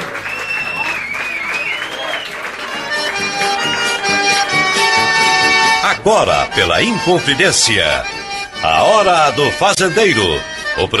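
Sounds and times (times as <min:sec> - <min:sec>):
crowd clapping: 0:00.0 - 0:05.1
sliding whistles: 0:00.2 - 0:02.4
speech: 0:06.0 - 0:10.9.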